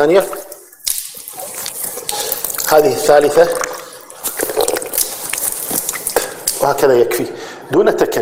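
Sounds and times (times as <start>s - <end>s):
speech: 0.0s - 0.4s, 2.7s - 3.7s, 6.6s - 8.1s
hands splashing water on the face during ablution: 0.3s - 6.8s.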